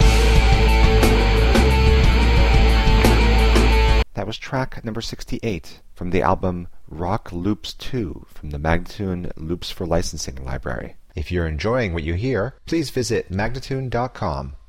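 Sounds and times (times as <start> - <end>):
rock loop: 0.0 - 4.0
person speaking: 4.0 - 14.6.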